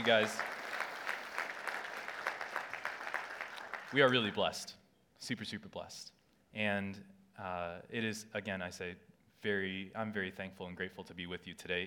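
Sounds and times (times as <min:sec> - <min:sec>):
speech: 0:00.0 - 0:00.5, 0:03.9 - 0:11.8
audience applause: 0:00.0 - 0:04.4.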